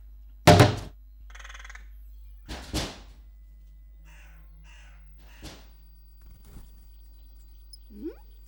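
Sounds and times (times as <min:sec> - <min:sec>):
loud thump: 0:00.5 - 0:00.9
pet parrot squawking: 0:07.7 - 0:08.4.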